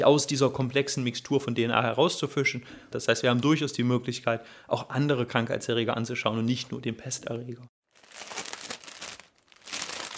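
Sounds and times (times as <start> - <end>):
speech: 0.0 - 8.3
plastic film around a white lab suit being torn open: 7.9 - 10.1.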